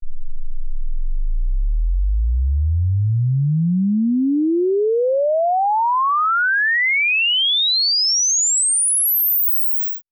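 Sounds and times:
exponential sine sweep from 10 Hz to 24 kHz: 0.0s - 3.0s, 3.8s - 10.0s.

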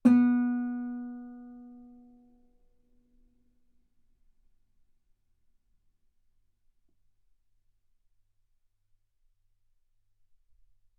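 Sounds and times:
guitar note B3: 0.1s - 2.0s.

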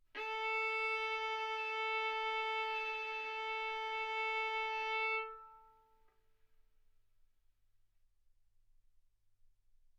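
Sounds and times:
violin arco on A string: 0.0s - 6.0s.

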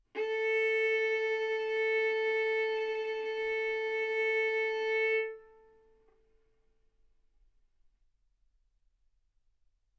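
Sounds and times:
violin bowed arco notes: 0.0s - 5.8s.

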